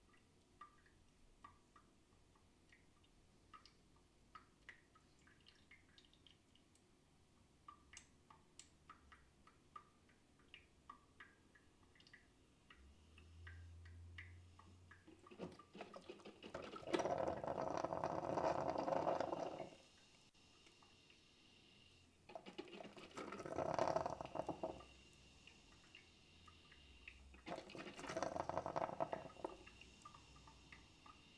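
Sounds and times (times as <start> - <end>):
coffee machine: 15.1 - 19.8, 22.3 - 24.8, 27.4 - 30.5.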